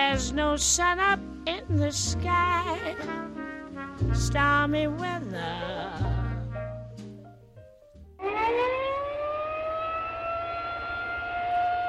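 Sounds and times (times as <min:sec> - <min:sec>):
speech: 0:00.1 - 0:06.1
tornado warning siren: 0:08.2 - 0:11.8.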